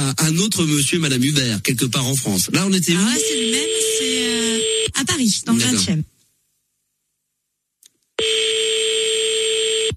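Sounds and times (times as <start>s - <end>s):
speech: 0.1s - 4.3s, 5.0s - 6.1s
buzzing telephone ring tone: 3.2s - 4.9s, 8.2s - 9.9s.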